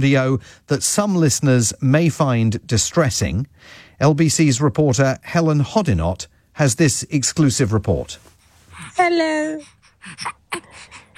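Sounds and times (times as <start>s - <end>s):
speech: 0.0s - 11.1s
baby boy gasping and struggling to breathe: 8.4s - 11.1s.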